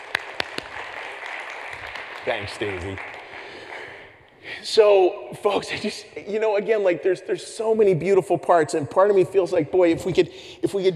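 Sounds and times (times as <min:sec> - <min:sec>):
audience applause: 0:00.0 - 0:04.2
speech: 0:02.2 - 0:03.2, 0:04.6 - 0:10.9.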